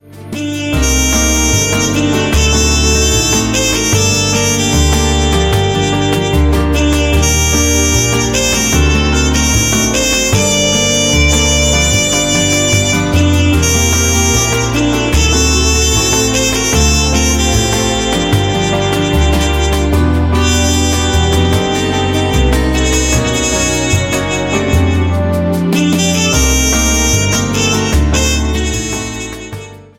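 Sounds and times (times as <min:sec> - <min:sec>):
nostalgic bossa nova ringtone: 0:00.1 - 0:29.6.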